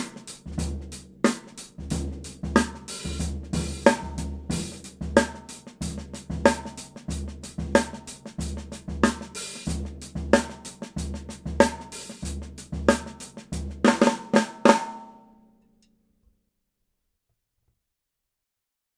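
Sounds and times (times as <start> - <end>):
Ludwig Supraphonic 5 x 14 snare drum: 0.0 - 15.2.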